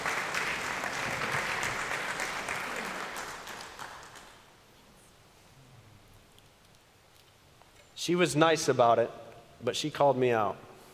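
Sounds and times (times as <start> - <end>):
audience applause: 0.0 - 4.5
speech: 8.0 - 10.7.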